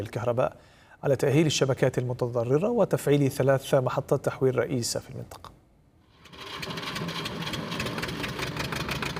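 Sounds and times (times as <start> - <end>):
speech: 0.0 - 5.6
diesel generator powering a grain-sifting workshop: 6.2 - 9.1.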